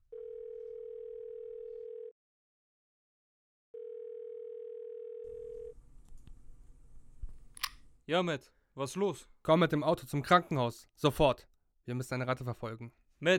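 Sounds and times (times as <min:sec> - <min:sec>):
telephone call dialing tone: 0:00.1 - 0:02.2, 0:03.8 - 0:05.8
speech: 0:08.1 - 0:13.3.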